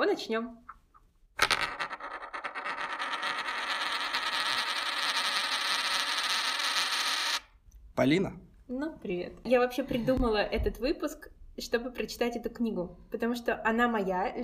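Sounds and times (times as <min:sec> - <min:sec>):
speech: 0:00.0 - 0:00.8, 0:08.0 - 0:14.4
coin spinning on a hard surface: 0:01.4 - 0:07.5.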